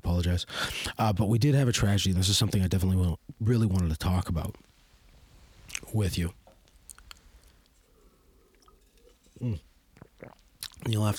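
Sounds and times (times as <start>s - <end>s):
speech: 0.2s - 4.7s, 5.9s - 6.4s, 9.4s - 11.1s
person drinking water: 5.6s - 11.1s.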